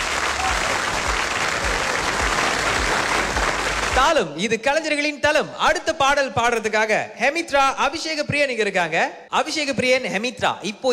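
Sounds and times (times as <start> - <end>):
audience applause: 0.0 - 4.1
speech: 4.0 - 10.9.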